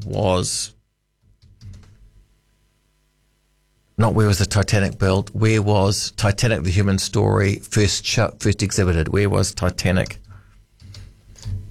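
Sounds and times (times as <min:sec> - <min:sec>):
speech: 0:00.0 - 0:00.8, 0:04.0 - 0:10.2
quick typing on a computer keyboard: 0:01.4 - 0:02.0, 0:09.9 - 0:11.6.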